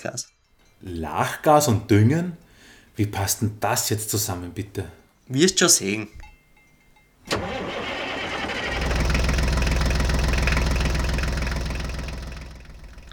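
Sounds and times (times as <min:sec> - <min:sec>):
speech: 0:00.0 - 0:02.4, 0:03.0 - 0:06.2
tractor diesel engine starting and rumbling: 0:07.3 - 0:13.1.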